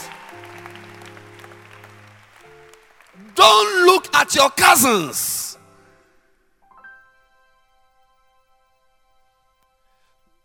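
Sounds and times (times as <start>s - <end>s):
audience clapping: 0.0s - 4.3s
speech: 3.3s - 5.4s.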